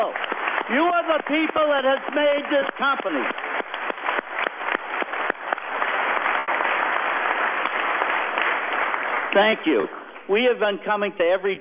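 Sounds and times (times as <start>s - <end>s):
speech: 0.0s - 3.5s, 9.3s - 11.6s
audience applause for retirees: 0.0s - 10.1s.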